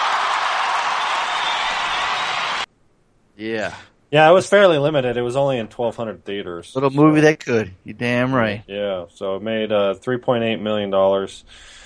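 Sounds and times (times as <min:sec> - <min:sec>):
round of applause: 0:00.0 - 0:02.7
speech: 0:03.4 - 0:11.8.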